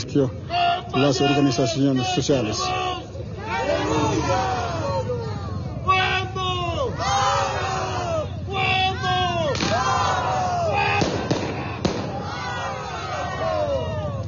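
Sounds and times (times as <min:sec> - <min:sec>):
protest crowd shouting and chanting: 0:00.0 - 0:14.2
speech: 0:00.1 - 0:02.9
sharp pops or bangs: 0:09.5 - 0:09.9, 0:10.9 - 0:12.4.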